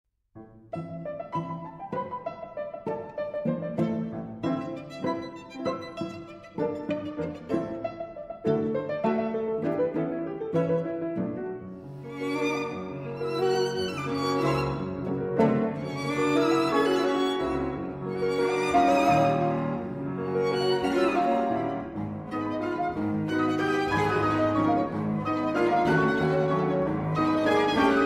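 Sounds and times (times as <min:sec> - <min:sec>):
piano trio in A minor: 0:00.4 - 0:28.0.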